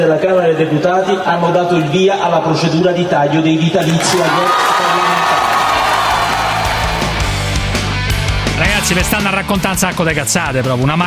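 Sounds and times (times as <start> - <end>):
speech: 0.0 - 5.0, 8.6 - 11.0
crowd applauding and cheering below the Italian Chamber of Deputies: 3.8 - 9.0.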